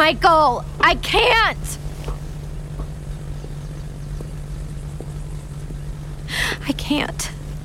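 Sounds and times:
small propeller airplane engine: 0.0s - 7.6s
speech: 0.1s - 1.8s, 6.3s - 7.4s.

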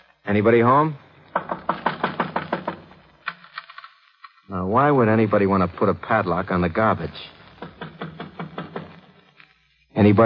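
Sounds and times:
speech: 0.2s - 1.0s, 4.5s - 7.4s, 10.0s - 10.2s
knocking on a wooden shed door: 1.3s - 2.9s, 7.6s - 9.0s.

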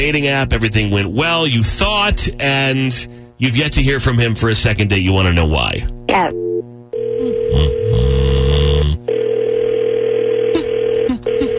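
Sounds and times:
speech: 0.0s - 6.7s
telephone line tones of an outgoing call: 6.4s - 11.5s
low burbling: 7.5s - 9.1s.

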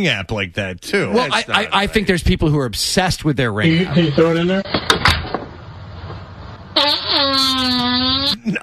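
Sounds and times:
speech: 0.0s - 5.0s
fart sound effect: 6.7s - 8.4s.

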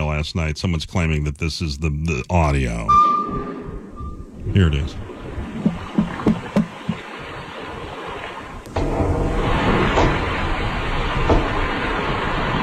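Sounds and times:
speech: 0.2s - 3.2s, 4.5s - 5.8s
underwater banging on a tiny submersible: 5.0s - 12.6s.

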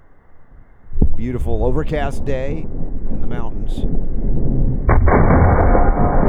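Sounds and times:
gunshot outdoors in the mountains on an overcast day: 0.6s - 6.2s
speech: 1.2s - 5.4s.

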